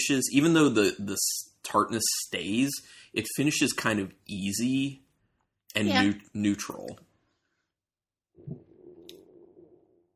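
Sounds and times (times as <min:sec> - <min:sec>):
speech: 0:00.0 - 0:05.0, 0:05.7 - 0:07.1
stomach rumbling: 0:08.4 - 0:10.1.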